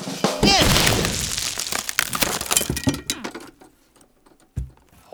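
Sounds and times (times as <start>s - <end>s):
clattering debris from a wooden Fastelavn barrel: 0.3s - 3.7s, 4.3s - 5.0s
wooden Fastelavn barrel being struck and breaking apart: 0.3s - 3.7s, 4.5s - 5.0s
thump: 0.4s - 3.5s, 4.6s - 5.0s.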